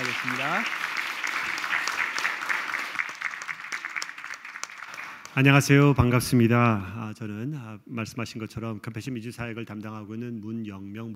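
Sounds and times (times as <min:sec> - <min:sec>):
audience applause: 0:00.0 - 0:05.5
speech: 0:05.4 - 0:11.1.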